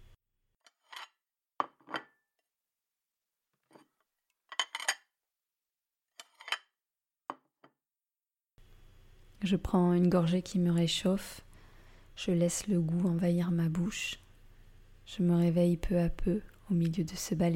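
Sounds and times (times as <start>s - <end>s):
coffee cup and dishes clinking as waiter serves coffee: 0.7s - 2.2s, 4.5s - 5.1s, 6.2s - 6.7s
speech: 9.4s - 11.5s, 12.2s - 14.2s, 15.1s - 17.5s.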